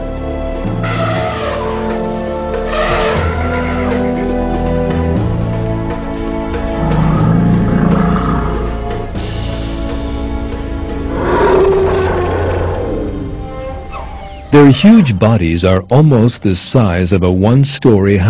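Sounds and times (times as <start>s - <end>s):
continuous tonal background: 0.0s - 18.2s
elephant trumpeting: 0.8s - 2.0s, 2.6s - 4.1s, 6.6s - 9.2s, 11.0s - 14.3s
speech: 14.5s - 18.2s.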